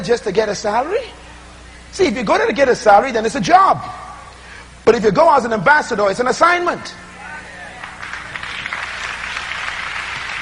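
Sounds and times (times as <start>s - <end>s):
speech: 0.0s - 1.2s, 1.9s - 4.0s, 4.9s - 7.0s
audience clapping: 7.7s - 10.4s.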